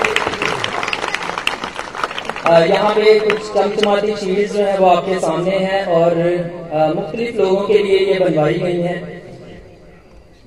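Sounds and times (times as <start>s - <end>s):
audience applause: 0.0s - 4.0s
speech: 2.5s - 9.2s.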